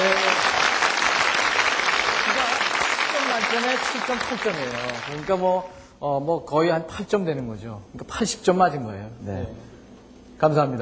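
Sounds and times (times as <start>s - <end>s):
studio audience applause: 0.0s - 5.6s
speech: 3.6s - 9.7s, 10.4s - 10.8s.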